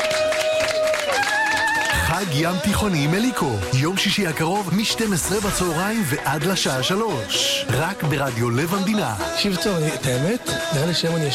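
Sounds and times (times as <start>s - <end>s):
audience applauding for arriving soldiers: 0.0s - 2.4s
speech: 2.2s - 11.3s.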